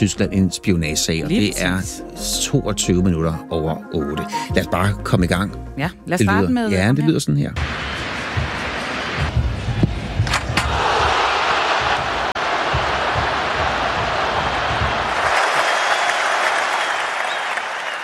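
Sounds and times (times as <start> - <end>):
speech: 0.0 - 8.1
stadium crowd cheering as Messi scores in his final Argentina match: 7.7 - 18.0
heavy thumps: 8.3 - 15.3.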